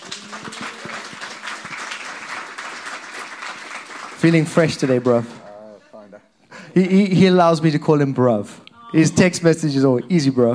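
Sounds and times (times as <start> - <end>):
audience applause: 0.0 - 5.4
speech: 4.2 - 5.4, 6.8 - 10.5.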